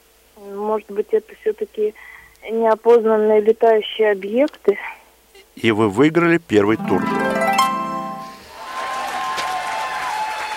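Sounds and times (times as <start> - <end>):
speech: 0.4 - 5.0, 5.6 - 7.4
brief bright musical sting: 6.8 - 8.5
audience applause: 8.4 - 10.5.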